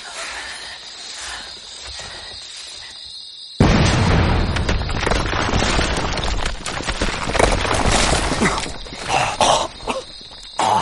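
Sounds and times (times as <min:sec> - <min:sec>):
dynamite explosion: 0:03.6 - 0:08.8.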